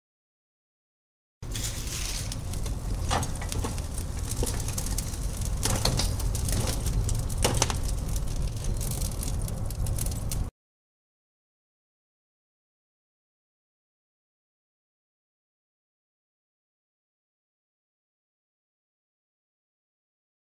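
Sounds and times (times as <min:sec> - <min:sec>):
fire from close perspective: 0:01.4 - 0:10.5.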